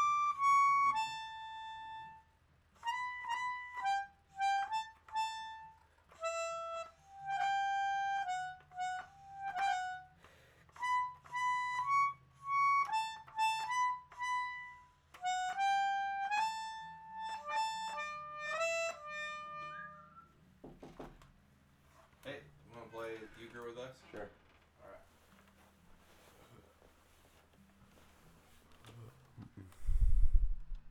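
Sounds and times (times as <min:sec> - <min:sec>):
instrumental melodica: 0:00.0 - 0:20.4.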